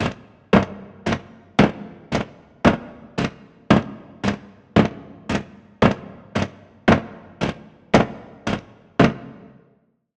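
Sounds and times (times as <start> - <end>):
clock: 0.0 - 6.6.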